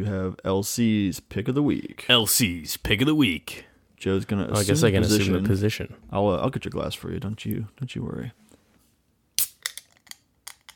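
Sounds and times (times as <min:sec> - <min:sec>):
speech: 0:00.0 - 0:08.4
beer being cracked open: 0:09.4 - 0:10.7.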